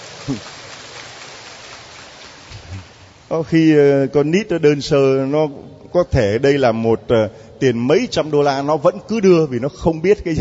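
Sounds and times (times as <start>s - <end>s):
crowd applauding for a child: 0.0s - 2.9s
speech: 0.2s - 0.6s, 3.3s - 10.4s.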